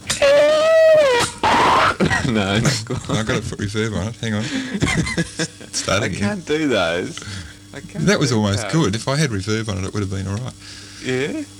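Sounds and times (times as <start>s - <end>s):
voice imitating a speeding screeching car: 0.1s - 2.0s
laughter: 1.9s - 6.0s
speech: 2.3s - 11.5s.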